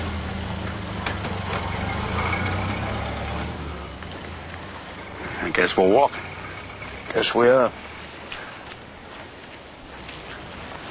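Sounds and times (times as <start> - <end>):
car engine starting and driving off: 0.0 - 8.4
speech: 5.6 - 6.3, 7.1 - 7.8.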